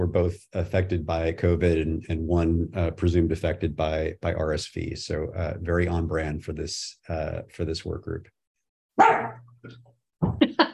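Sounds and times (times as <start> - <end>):
speech: 0.0 - 8.4, 9.0 - 10.5
pet dog barking during an online meeting: 9.0 - 9.4.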